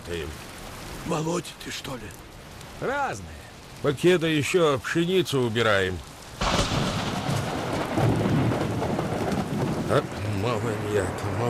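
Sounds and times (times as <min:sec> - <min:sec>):
heavy rain in a thunderstorm: 0:00.0 - 0:11.4
speech: 0:00.1 - 0:06.1, 0:09.9 - 0:11.4
deep rolling thunder: 0:06.4 - 0:11.4.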